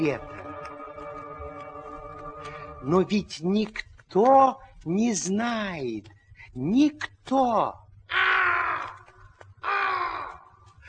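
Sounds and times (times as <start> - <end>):
speech: 0.0 - 0.3, 2.8 - 8.2
raven cawing: 8.0 - 10.6.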